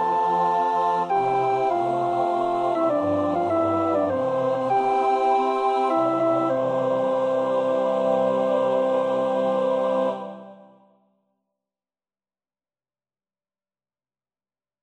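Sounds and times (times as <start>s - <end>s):
male voices singing tenor one part: 0.0s - 10.8s.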